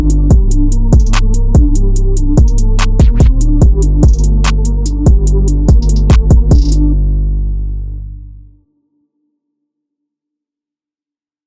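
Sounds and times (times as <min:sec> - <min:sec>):
chill beat: 0:00.0 - 0:07.0.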